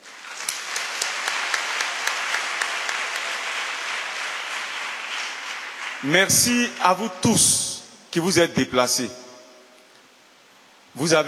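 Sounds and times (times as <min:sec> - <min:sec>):
church congregation applauding: 0:00.0 - 0:07.8
speech: 0:06.0 - 0:09.2, 0:11.0 - 0:11.2.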